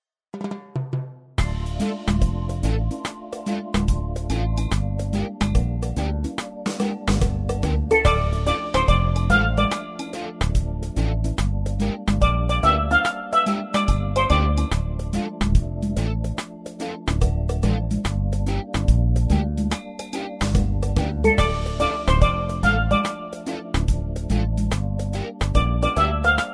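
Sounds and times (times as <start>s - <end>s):
reggae blues music: 1.4s - 26.5s.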